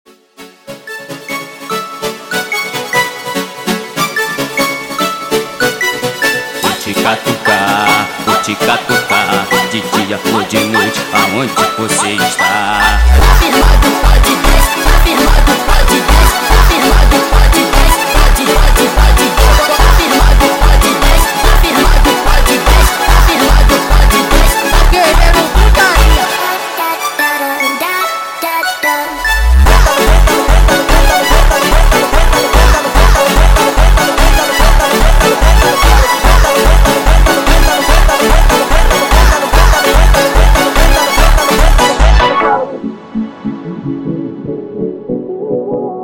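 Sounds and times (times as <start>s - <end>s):
sped-up phonk music: 0.1s - 46.0s.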